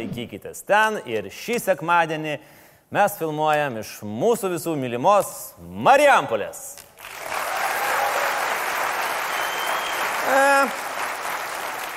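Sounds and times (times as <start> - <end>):
speech: 0.0 - 6.8, 10.3 - 10.8
thin steady applause from an audience at a filmed event in Marijampolė: 7.0 - 11.9.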